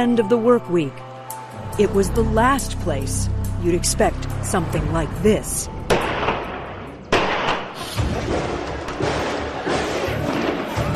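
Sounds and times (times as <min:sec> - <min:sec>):
speech: 0:00.0 - 0:01.1, 0:01.8 - 0:05.8
explosions in shopping mall: 0:04.8 - 0:10.7
gunshots in shopping mall: 0:05.9 - 0:10.8.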